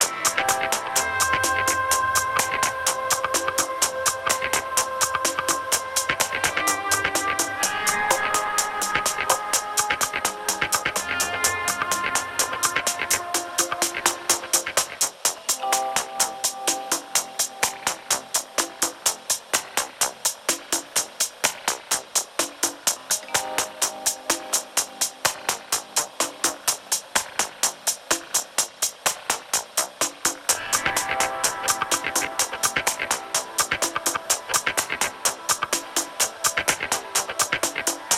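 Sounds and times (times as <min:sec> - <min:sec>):
satellite muzak loop: 0:00.0 - 0:38.1.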